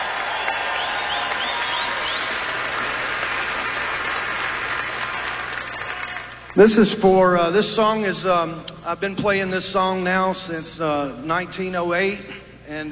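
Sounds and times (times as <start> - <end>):
Grand Ole Opry audience applause for first responders and military personnel: 0.0 - 6.6
speech: 6.6 - 12.9.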